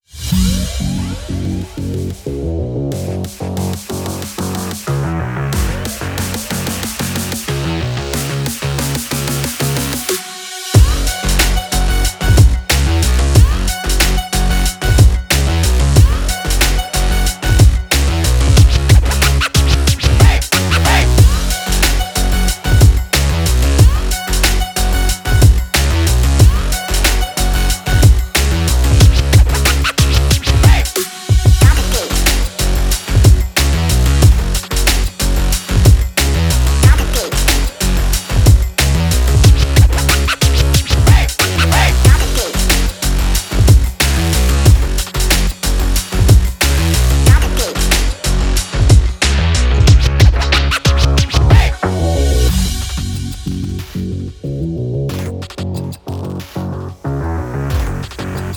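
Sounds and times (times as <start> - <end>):
energetic racing breakbeat music: 0.1 - 58.5.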